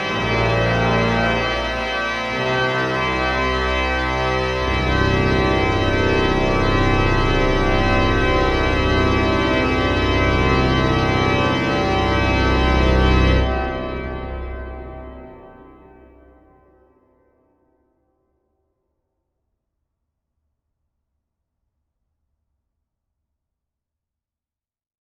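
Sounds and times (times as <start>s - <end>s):
organist playing a resurrection fanfare: 0.0s - 16.0s.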